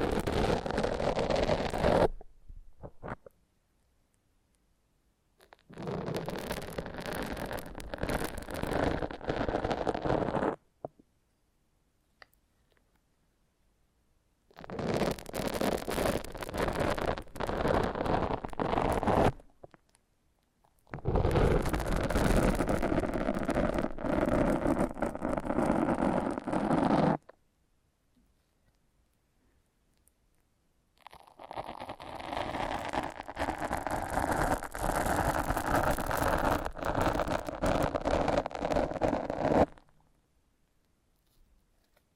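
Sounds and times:
foam massage rubbing and squeaking: 0.0s - 2.2s, 5.5s - 10.6s, 14.6s - 19.5s, 20.9s - 27.2s, 31.1s - 39.9s.

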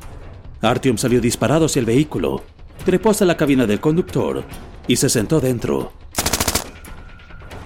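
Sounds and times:
speech: 0.6s - 6.2s
machine gun burst: 6.2s - 6.8s.

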